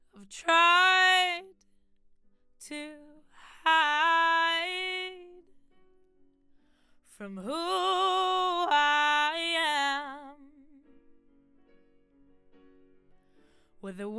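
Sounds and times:
vocals: 0.0 - 1.6, 2.6 - 5.6, 7.1 - 11.0, 13.8 - 14.1.

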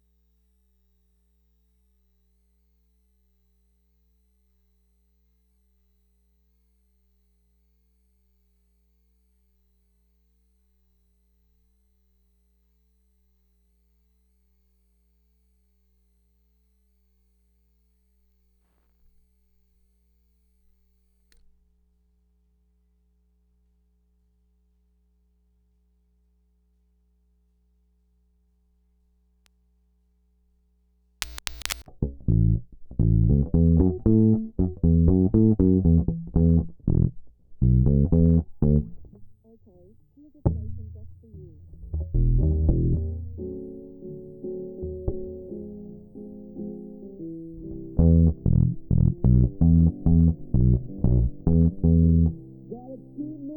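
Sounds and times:
bass guitar recorded by direct input: 31.2 - 53.5.

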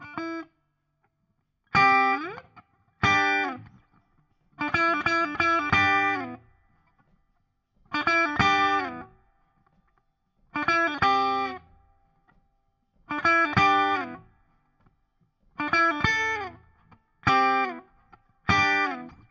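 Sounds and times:
guitar solo: 0.0 - 0.5, 1.7 - 3.9, 4.6 - 6.5, 7.9 - 9.2, 10.6 - 11.8, 13.1 - 14.4, 15.6 - 19.2.

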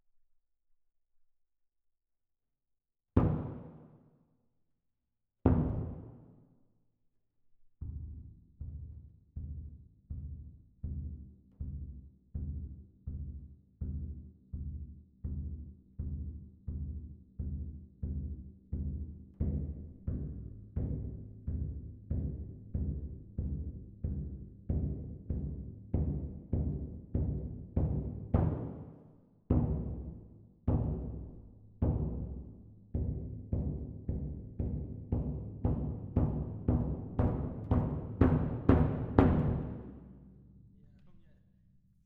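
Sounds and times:
percussion: 3.2 - 4.1, 5.4 - 6.5, 7.8 - 41.8.

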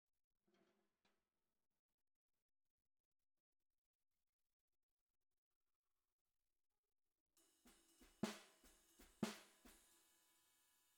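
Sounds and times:
bottom snare drum: 7.4 - 10.2.

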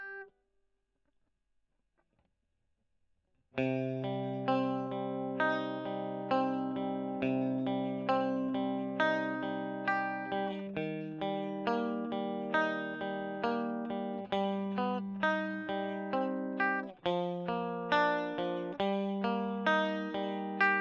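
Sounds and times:
electric guitar recorded with a Gefell microphone: 0.0 - 0.3, 3.6 - 20.7.

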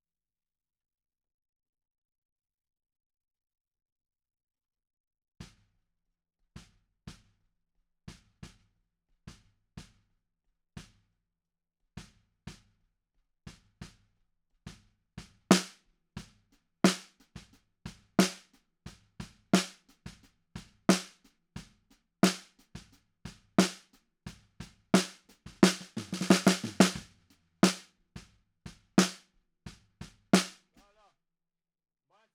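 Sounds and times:
snare drum: 15.2 - 16.3, 16.9 - 18.5, 19.2 - 21.2, 22.2 - 30.8.

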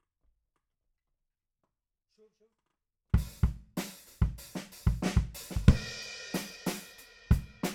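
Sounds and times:
bass drum: 3.2 - 6.1.

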